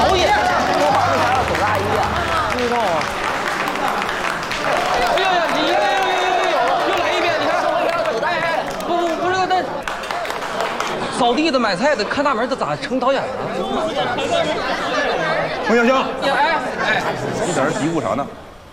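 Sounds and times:
warm applause welcoming four directors at a stage event: 0.0s - 11.2s
speech: 11.4s - 15.1s, 15.7s - 18.5s.

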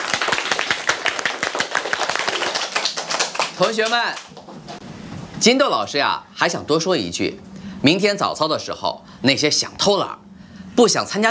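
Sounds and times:
group clapping hands: 0.0s - 4.5s
speech: 3.6s - 4.4s, 5.4s - 10.2s, 10.8s - 11.2s.

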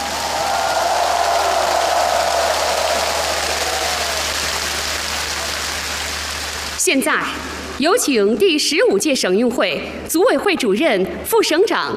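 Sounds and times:
crowd applauding warmly welcoming guests: 0.0s - 6.8s
speech: 6.9s - 11.9s.

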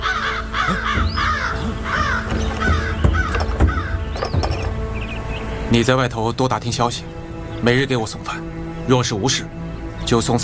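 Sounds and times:
crows cawing: 0.0s - 4.7s
speech: 5.7s - 10.4s.

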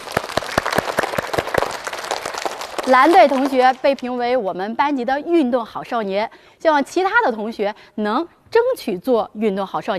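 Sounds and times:
classroom students clapping for the winning blue team: 0.0s - 4.0s
speech: 2.8s - 9.9s.

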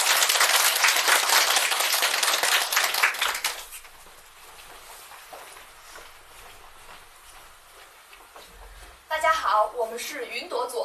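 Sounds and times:
applause: 0.0s - 3.9s
speech: 9.8s - 10.8s.

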